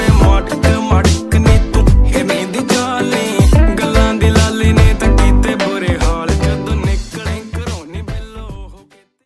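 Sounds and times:
Punjabi song ringtone: 0:00.1 - 0:07.4.

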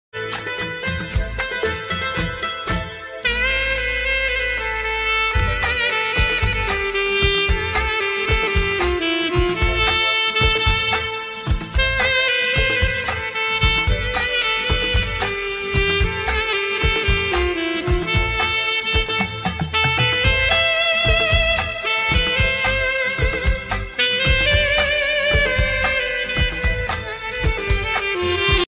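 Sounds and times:
alto saxophone ringtone: 0:00.2 - 0:28.7.

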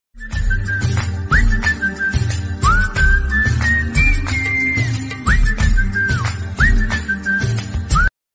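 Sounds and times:
love music ringtone: 0:00.2 - 0:08.1.

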